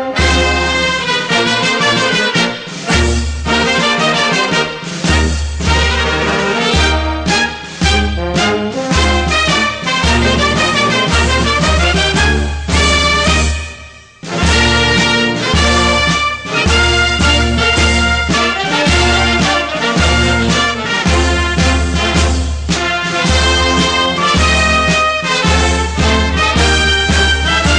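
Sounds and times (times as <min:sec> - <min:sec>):
Peruvian military march music: 0:00.0 - 0:27.7.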